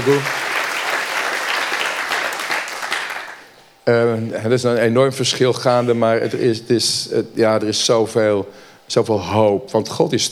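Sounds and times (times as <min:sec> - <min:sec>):
speech: 0:00.0 - 0:00.4, 0:03.9 - 0:10.3
crowd applause: 0:00.0 - 0:03.5.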